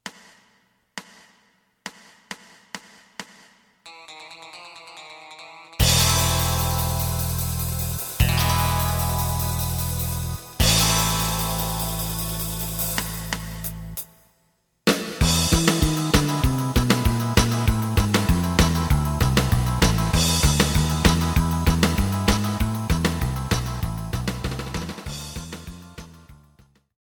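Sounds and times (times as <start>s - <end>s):
lead guitar: 3.9s - 13.4s, 15.3s - 25.7s.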